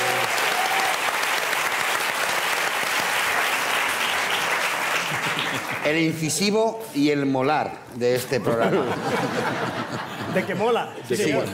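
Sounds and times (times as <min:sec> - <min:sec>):
applause: 0:00.0 - 0:06.2
laughter: 0:05.0 - 0:05.8, 0:08.4 - 0:11.5
speech: 0:05.9 - 0:11.5.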